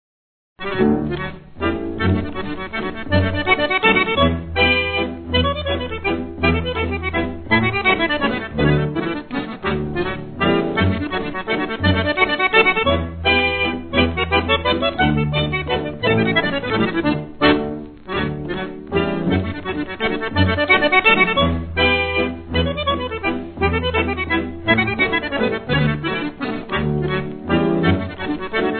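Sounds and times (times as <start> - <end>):
orchestrina playing a mazurka with variations: 0.6 - 28.7.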